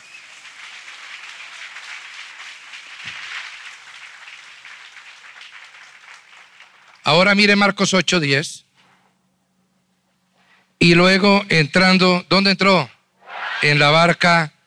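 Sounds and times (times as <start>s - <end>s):
audience applauding: 0.0s - 7.3s
speech: 7.1s - 8.6s, 10.8s - 12.9s, 13.6s - 14.6s.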